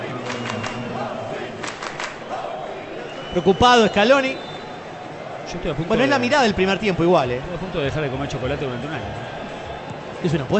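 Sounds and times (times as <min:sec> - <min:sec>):
Argentine fans singing: 0:00.0 - 0:03.3
crowd shouting in Kansas: 0:00.0 - 0:10.5
speech: 0:03.4 - 0:04.5, 0:05.5 - 0:09.4, 0:10.2 - 0:10.5.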